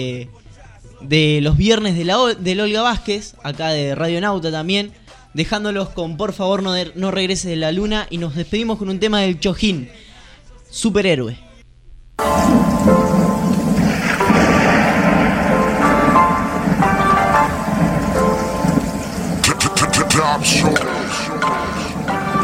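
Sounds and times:
speech: 0:00.0 - 0:00.4, 0:01.0 - 0:10.0, 0:10.7 - 0:11.4, 0:20.4 - 0:21.9
low rolling thunder with a crackling burst: 0:12.2 - 0:22.4
steady rain pouring on a city: 0:12.2 - 0:22.4
sustained tonal hum: 0:12.2 - 0:22.4.

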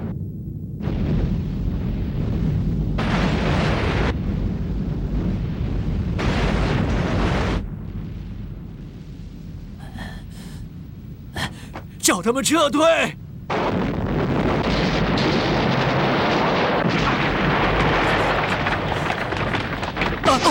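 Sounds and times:
explosives set off by the attackers detonating: 0:00.0 - 0:20.4
speech: 0:12.1 - 0:13.2.

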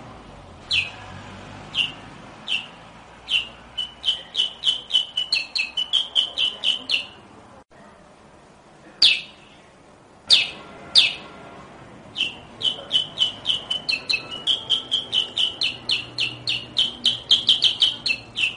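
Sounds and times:
sooty-headed bulbul chirping rapidly: 0:00.6 - 0:07.2, 0:09.0 - 0:09.6, 0:10.3 - 0:11.4, 0:12.1 - 0:18.5.

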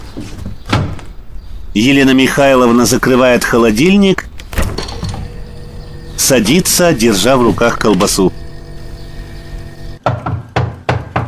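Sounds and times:
speech: 0:01.8 - 0:04.3, 0:06.2 - 0:08.4
knocking on a door: 0:10.0 - 0:11.2.

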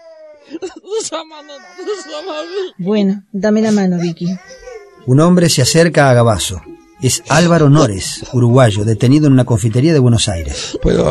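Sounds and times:
young girl crying with whimpering sobs: 0:00.0 - 0:02.9, 0:03.6 - 0:05.0
speech: 0:00.4 - 0:11.0.

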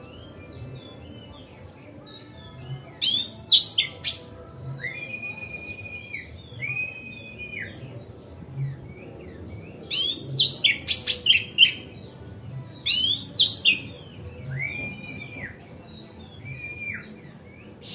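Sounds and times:
Oriental magpie-robin whistling song: 0:00.0 - 0:08.0, 0:08.6 - 0:12.0, 0:12.8 - 0:17.9.

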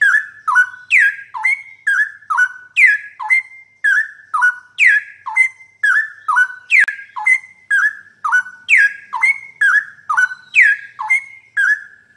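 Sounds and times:
bird singing whistled notes: 0:00.0 - 0:12.1.

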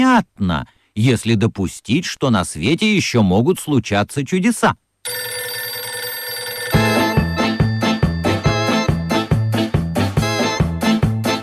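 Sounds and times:
speech: 0:00.0 - 0:05.2
telephone ringing: 0:05.0 - 0:10.8.

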